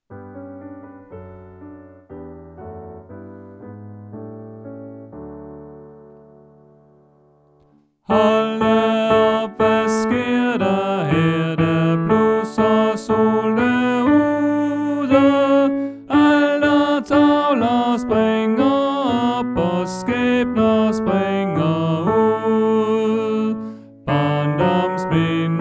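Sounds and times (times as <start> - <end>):
tenor singing: 8.1 - 25.6.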